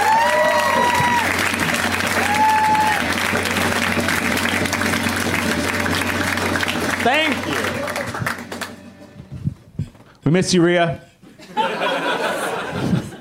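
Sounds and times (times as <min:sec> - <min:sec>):
audience applauding a comedian coming on stage: 0:00.0 - 0:08.9
speech: 0:10.3 - 0:11.1
laughter: 0:11.3 - 0:13.1.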